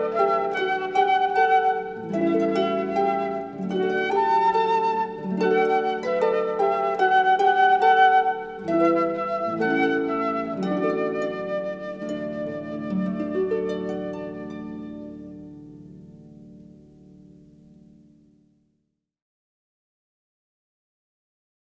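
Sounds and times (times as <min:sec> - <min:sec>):
instrumental nursery rhyme: 0:00.0 - 0:16.2.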